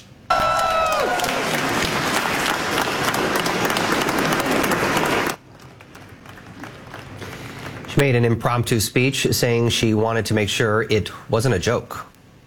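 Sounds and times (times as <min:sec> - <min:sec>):
high whoop: 0:00.3 - 0:01.6
peers applauding and cheering: 0:00.3 - 0:08.5
speech: 0:08.0 - 0:12.1.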